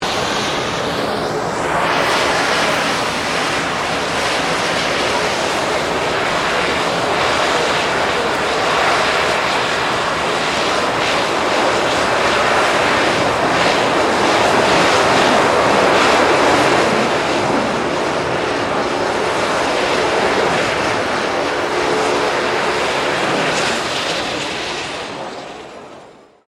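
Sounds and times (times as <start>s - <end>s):
C-27J Spartan transport aircraft idling and shutting down: 0.0s - 26.4s.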